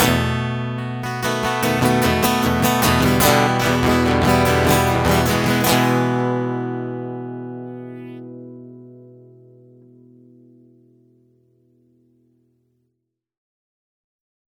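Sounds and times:
instrumental music: 0.0s - 11.2s.

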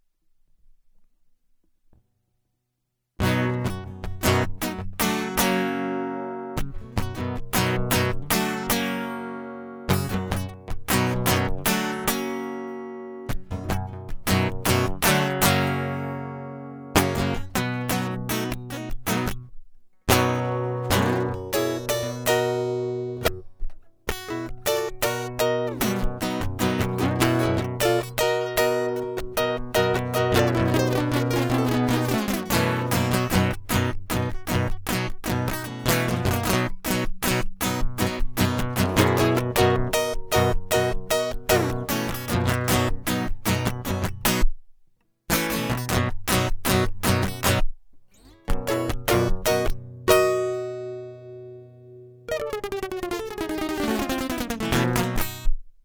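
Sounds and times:
guitar loop: 3.2s - 19.5s, 20.1s - 44.5s, 45.3s - 55.6s.

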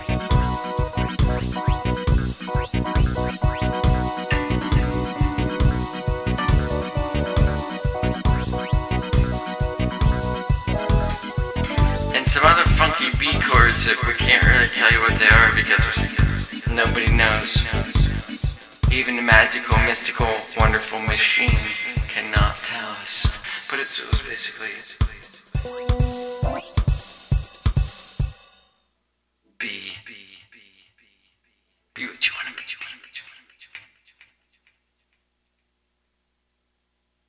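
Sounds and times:
soundcheck: 0.0s - 23.2s, 25.6s - 28.3s.

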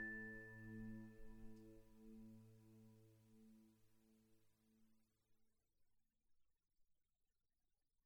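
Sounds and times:
instrumental music: 0.0s - 3.2s.

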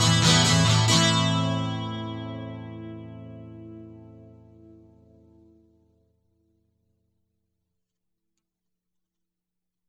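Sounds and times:
guitar: 0.0s - 6.1s.

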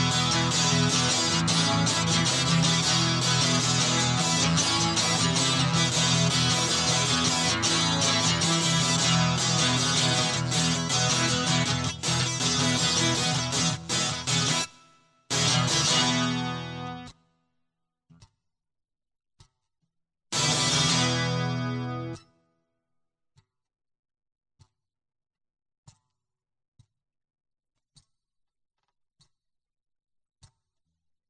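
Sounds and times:
guitar loop: 0.0s - 17.1s, 20.4s - 22.2s.

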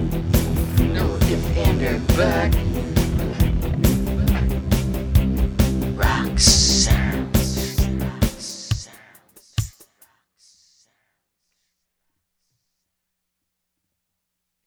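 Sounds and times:
alternative rock music: 0.0s - 9.0s.

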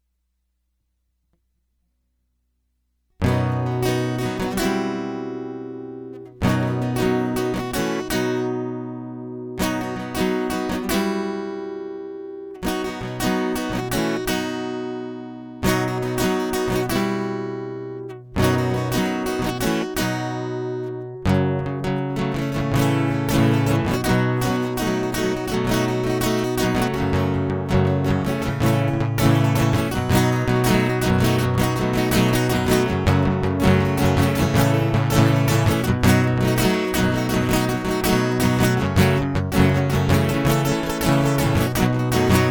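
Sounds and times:
guitar loop: 3.2s - 42.5s.

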